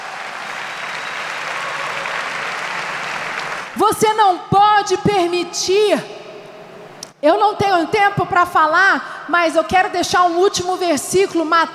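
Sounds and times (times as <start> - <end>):
audience applause: 0.0 - 3.8
speech: 3.8 - 6.2, 7.2 - 11.7.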